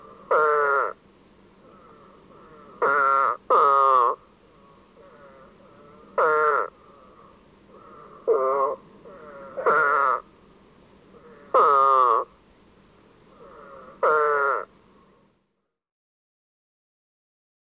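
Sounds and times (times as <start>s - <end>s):
Spadefoot bleating calls: 0.0s - 1.0s, 1.6s - 10.3s, 11.1s - 12.4s, 13.3s - 14.7s.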